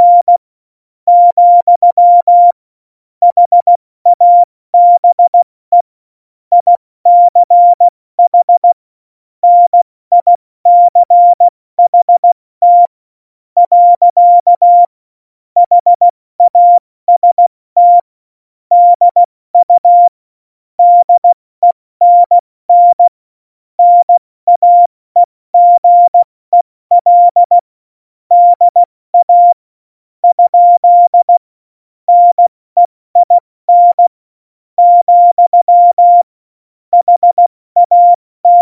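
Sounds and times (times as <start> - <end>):
CW Morse code beeps: 0.0 - 0.4, 1.1 - 2.6, 3.2 - 5.5, 6.5 - 8.8, 9.4 - 12.9, 13.6 - 14.9, 15.6 - 18.1, 18.7 - 20.2, 20.8 - 21.4, 22.0 - 23.1, 23.8 - 27.6, 28.3 - 29.6, 30.2 - 31.4, 32.1 - 34.1, 34.8 - 36.3, 36.9 - 38.6.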